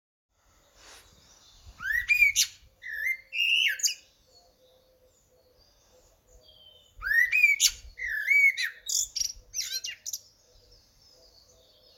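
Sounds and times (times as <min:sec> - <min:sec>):
Eurasian blackbird singing in Cambridgeshire: 0:00.6 - 0:11.9.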